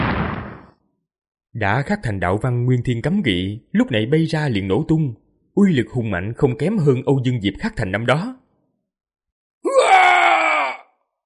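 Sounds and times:
speech: 1.6s - 8.4s
monstrous creature, an ancestor king, roaring as it thrusts its claws forward: 9.7s - 10.8s.

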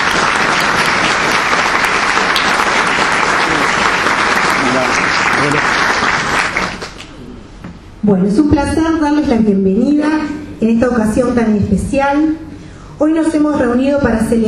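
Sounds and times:
audience applause: 0.0s - 7.1s
speech: 8.0s - 12.4s, 13.0s - 14.4s.

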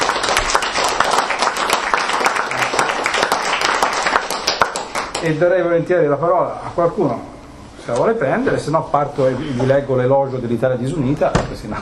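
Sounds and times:
audience applause at a talk on the history of the Italian flag: 0.0s - 5.3s
speech: 5.2s - 7.3s, 7.9s - 11.7s.

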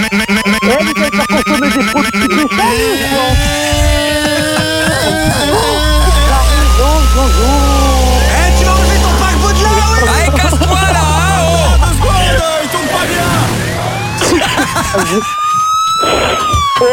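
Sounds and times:
small scooter engine buzzing: 0.0s - 12.4s
people talking: 0.0s - 15.4s, 16.0s - 16.9s
laughter: 0.6s - 13.3s, 14.1s - 16.8s.

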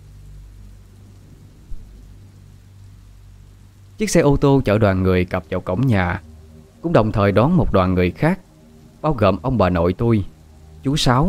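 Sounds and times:
wind roaring: 0.0s - 8.3s
steady rain: 0.0s - 11.2s
speech: 4.0s - 8.4s, 9.0s - 11.2s.

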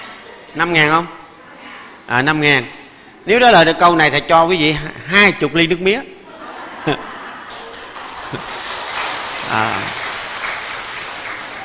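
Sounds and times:
speech: 0.5s - 1.2s, 2.1s - 6.1s, 6.8s - 7.1s, 8.3s - 8.5s, 9.5s - 10.0s
laughter: 6.2s - 10.1s
loud audience applause: 7.5s - 11.6s.

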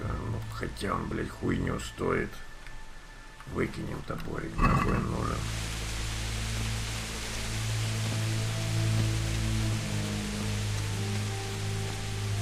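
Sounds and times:
rain that has only just begun falling: 0.0s - 12.4s
speech: 0.6s - 2.5s, 3.5s - 5.7s
low droning hum with faint tonal lines: 4.6s - 5.9s.

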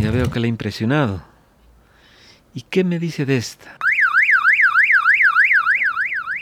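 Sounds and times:
speech: 0.1s - 1.3s, 2.5s - 3.8s
car alarm wailing: 3.8s - 6.4s.

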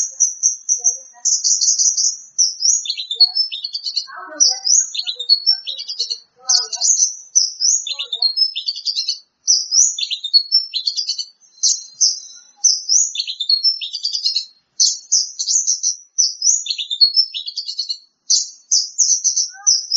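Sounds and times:
bird song with varied chirps and warbled trills: 0.0s - 19.9s.

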